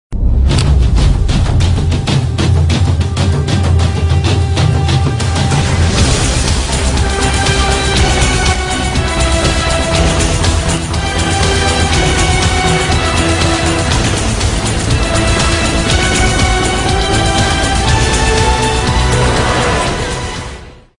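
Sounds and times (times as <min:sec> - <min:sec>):
action music: 0:00.1 - 0:20.9.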